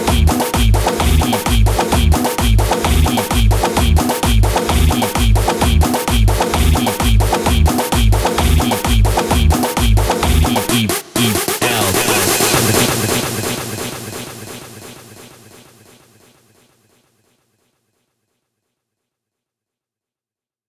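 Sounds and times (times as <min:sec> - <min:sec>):
130 bpm music track: 0:00.0 - 0:15.6.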